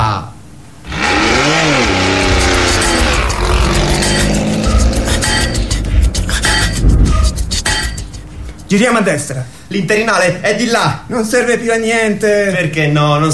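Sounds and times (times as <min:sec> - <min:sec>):
two-stroke moped engine revving and droning: 0:00.9 - 0:08.7
speech: 0:08.7 - 0:13.3.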